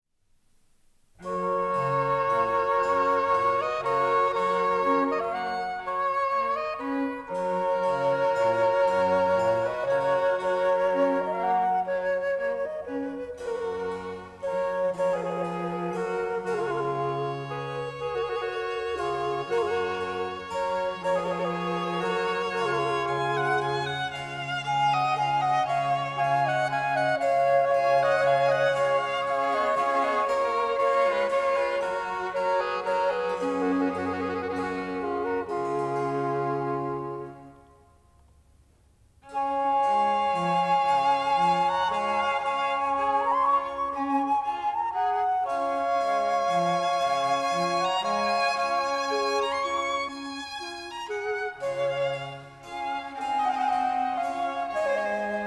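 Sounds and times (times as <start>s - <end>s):
quartet in G major, slow largo: 1.2s - 38.4s, 39.2s - 55.4s.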